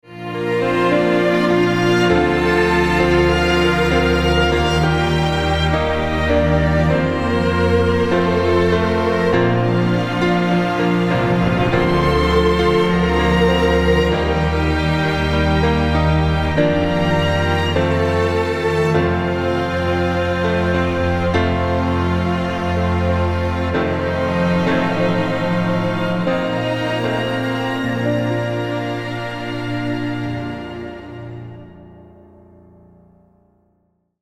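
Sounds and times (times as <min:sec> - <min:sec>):
string orchestra: 0:00.0 - 0:32.3.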